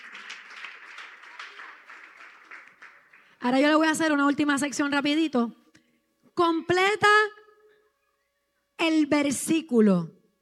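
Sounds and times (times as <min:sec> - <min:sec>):
audience applause: 0:00.0 - 0:03.4
speech: 0:03.4 - 0:05.6, 0:06.4 - 0:07.3, 0:08.9 - 0:10.2.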